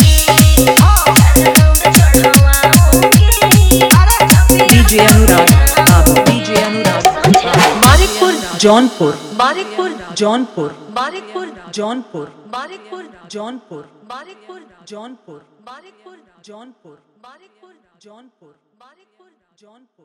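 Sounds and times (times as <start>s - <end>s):
Bhojpuri DJ song with dholak and bass mix: 0.0s - 11.2s.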